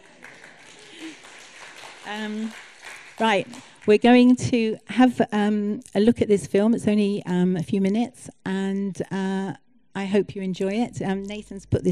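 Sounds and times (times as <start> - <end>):
audience clapping: 0.0 - 4.3
speech: 2.1 - 11.9.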